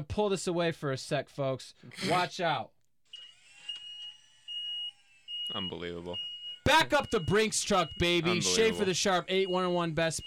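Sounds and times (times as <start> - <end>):
speech: 0.0 - 2.8, 5.5 - 10.2
scissor lift: 3.1 - 5.7.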